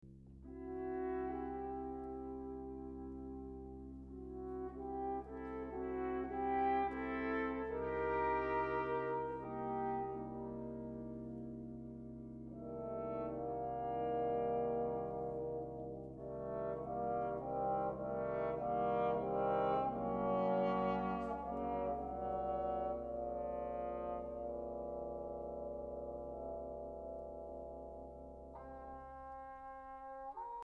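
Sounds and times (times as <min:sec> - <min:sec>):
brass instruments: 0:00.2 - 0:30.6.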